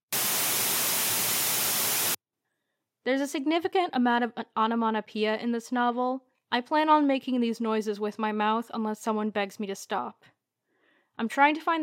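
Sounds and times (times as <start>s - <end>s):
static hiss marking censored information in an audiobook: 0.0s - 2.2s
speech: 3.1s - 10.3s, 11.2s - 11.8s.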